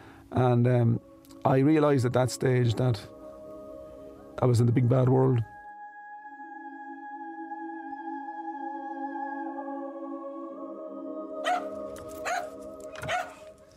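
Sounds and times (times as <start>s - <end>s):
speech: 0.3s - 3.2s, 4.4s - 5.5s
dog barking: 11.4s - 13.5s.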